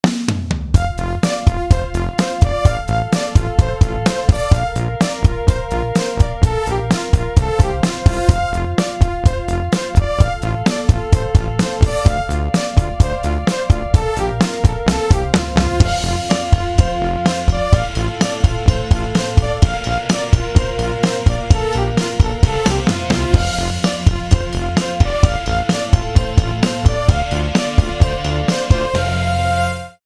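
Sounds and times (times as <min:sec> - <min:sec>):
synthesizer music: 0:00.8 - 0:30.0.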